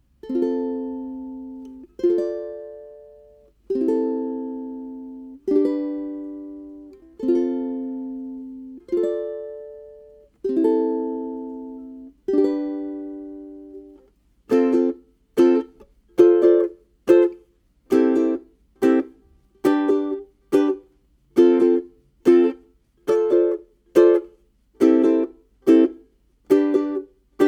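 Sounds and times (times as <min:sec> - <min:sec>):
ukulele strumming: 0:00.1 - 0:27.4.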